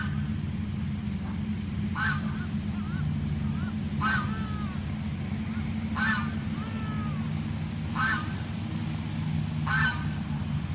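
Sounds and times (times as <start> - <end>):
goose-like honk: 0.0 - 0.3, 1.2 - 4.8, 5.5 - 8.6, 9.6 - 10.6
low rumbling hum: 0.0 - 10.7
soft chirping calls: 0.0 - 10.7.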